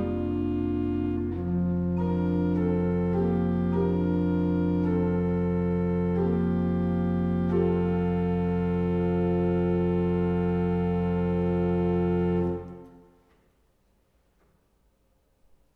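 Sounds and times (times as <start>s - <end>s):
organ prelude in F: 0.0s - 13.1s.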